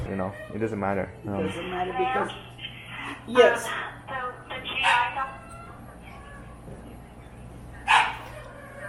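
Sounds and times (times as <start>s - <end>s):
speech: 0.1s - 2.5s, 3.3s - 3.9s
dog barking: 4.8s - 5.2s, 7.9s - 8.4s.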